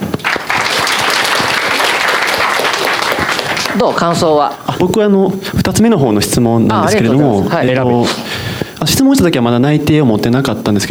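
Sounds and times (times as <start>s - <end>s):
audience applause: 0.0s - 4.3s
speech: 3.8s - 10.8s.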